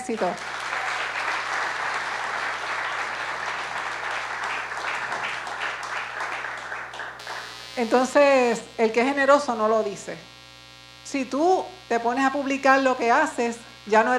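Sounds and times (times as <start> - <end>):
speech: 0.0 - 0.6, 7.8 - 10.3, 11.1 - 14.1
audience applause: 0.0 - 7.5.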